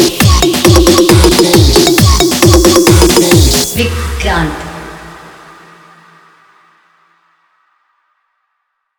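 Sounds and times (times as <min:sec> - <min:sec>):
vibration competition beat: 0:00.0 - 0:05.3.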